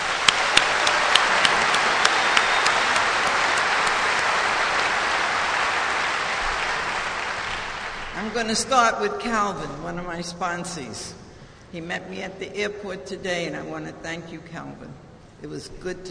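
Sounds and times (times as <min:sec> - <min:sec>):
audience applause: 0:00.0 - 0:08.5
speech: 0:08.4 - 0:16.0.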